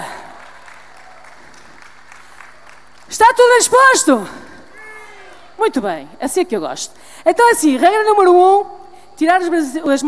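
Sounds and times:
audience applause for a radio station's 40th anniversary: 0.0 - 3.8
speech: 3.1 - 4.5, 5.6 - 10.0.

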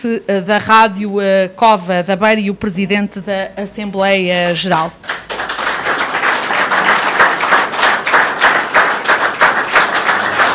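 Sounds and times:
speech: 0.0 - 5.1
audience clapping: 4.4 - 10.5.

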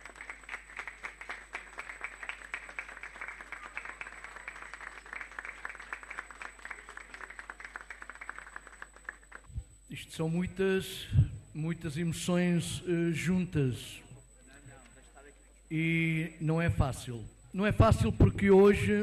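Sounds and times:
audience applause: 0.0 - 9.5
speech: 10.0 - 14.0, 15.7 - 19.0.

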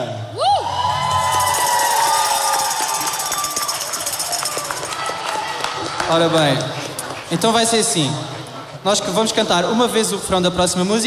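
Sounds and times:
audience cheering: 0.4 - 7.2
audience applause: 0.9 - 8.8
speech: 6.1 - 11.0.

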